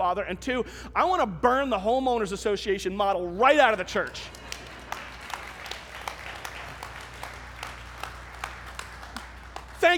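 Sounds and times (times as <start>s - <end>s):
speech: 0.1s - 4.5s
audience clapping: 3.6s - 9.9s.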